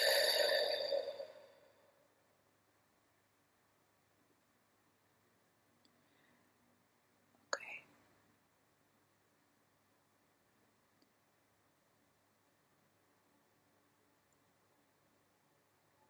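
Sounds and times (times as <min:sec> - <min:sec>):
deep breathy exhalation during a guided breathing exercise: 0:00.0 - 0:01.5.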